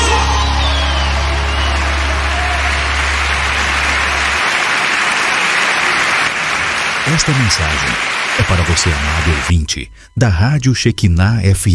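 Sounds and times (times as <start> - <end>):
low hum: 0.0 - 4.8
crowd applauding: 0.0 - 9.5
speech: 7.2 - 11.7.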